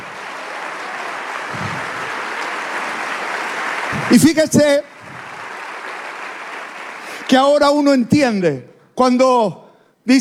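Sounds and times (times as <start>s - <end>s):
loud applause from audience: 0.0s - 8.0s
speech: 4.1s - 5.0s, 7.3s - 10.1s.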